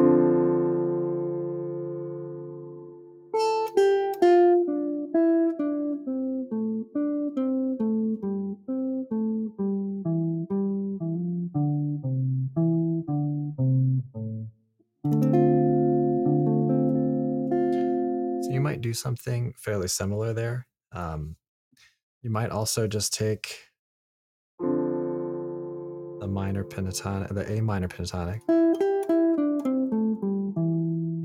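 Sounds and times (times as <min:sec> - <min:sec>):
D minor seventh chord: 0:00.0 - 0:14.4, 0:15.1 - 0:19.0, 0:24.6 - 0:31.2
musical tones: 0:00.0 - 0:14.5, 0:15.1 - 0:18.9, 0:24.6 - 0:27.8
speech: 0:19.0 - 0:21.4, 0:22.2 - 0:23.7, 0:26.4 - 0:28.6.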